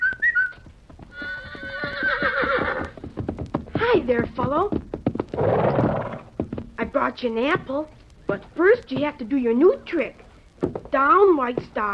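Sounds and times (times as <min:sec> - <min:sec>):
whistle notes: 0:00.0 - 0:00.6
horse trotting with clip-clopping hoofbeats: 0:00.0 - 0:11.9
horse whinnying: 0:01.1 - 0:03.0, 0:05.4 - 0:06.4
speech: 0:04.1 - 0:04.8, 0:07.0 - 0:11.9.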